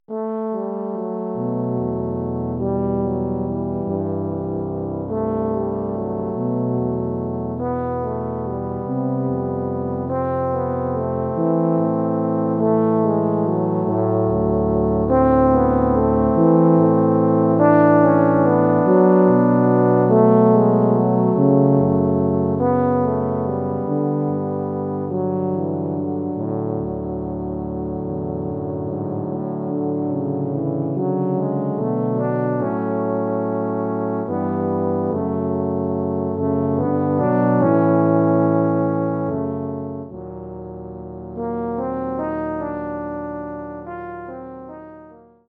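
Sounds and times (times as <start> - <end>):
tuba playing an etude: 0.1 - 45.4.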